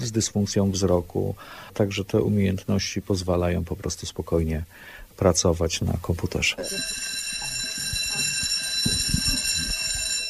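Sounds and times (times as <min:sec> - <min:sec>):
speech: 0:00.0 - 0:07.2
school bell ringing: 0:06.6 - 0:10.2.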